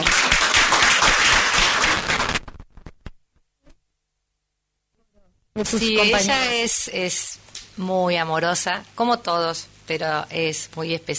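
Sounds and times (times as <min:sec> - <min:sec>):
applause: 0:00.0 - 0:02.6
speech: 0:05.6 - 0:11.1.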